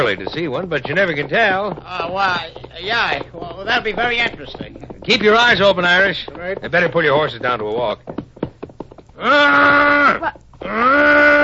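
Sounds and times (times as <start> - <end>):
speech: 0.1 - 8.2, 9.2 - 11.4
man imitating call of lost calf: 9.2 - 11.4.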